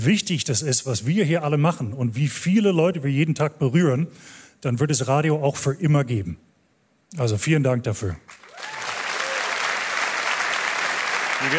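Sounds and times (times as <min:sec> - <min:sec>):
speech: 0:00.0 - 0:06.5, 0:07.1 - 0:08.4
applause at the Deutscher Radiopreis awards ceremony in Hamburg: 0:08.3 - 0:11.5.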